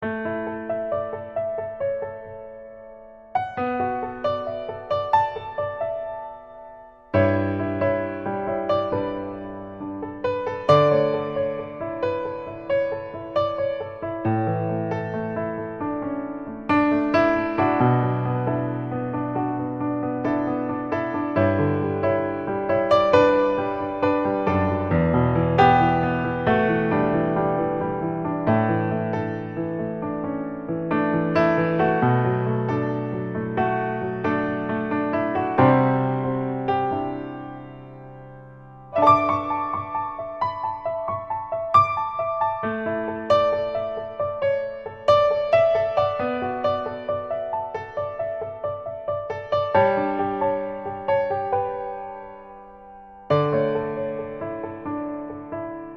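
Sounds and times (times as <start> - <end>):
delicate piano etude: 0.0 - 55.9.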